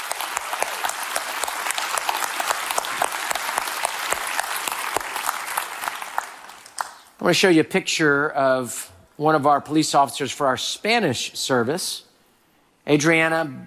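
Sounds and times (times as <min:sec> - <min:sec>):
audience cheering and applauding: 0:00.0 - 0:07.0
speech: 0:07.2 - 0:12.1, 0:12.8 - 0:13.6.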